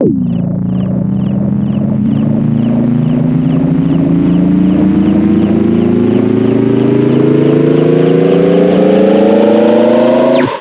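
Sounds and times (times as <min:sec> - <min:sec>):
charge-up sound effect: 0:00.0 - 0:10.5.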